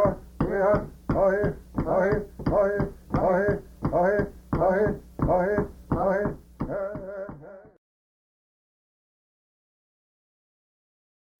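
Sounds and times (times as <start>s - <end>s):
stomp dance: 0.0s - 7.8s.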